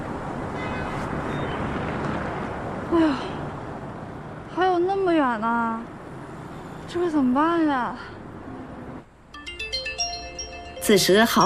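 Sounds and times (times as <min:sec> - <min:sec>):
dull noise: 0:00.0 - 0:11.4
speech: 0:05.3 - 0:05.9, 0:06.9 - 0:08.2, 0:10.9 - 0:11.4
mobile phone ringing with a bright electronic melody: 0:09.4 - 0:11.4.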